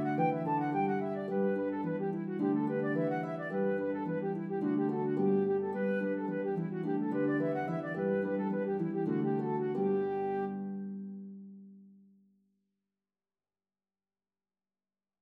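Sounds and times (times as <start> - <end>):
flute and harp duet playing a reel: 0.0 - 11.0.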